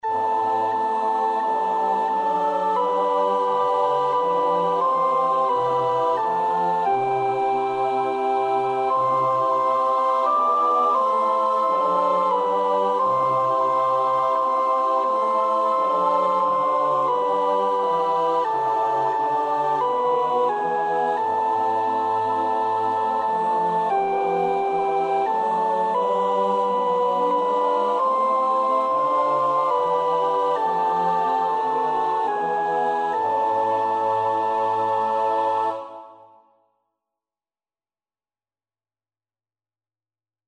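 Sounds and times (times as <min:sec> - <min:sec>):
soprano singing: 0:00.0 - 0:36.4.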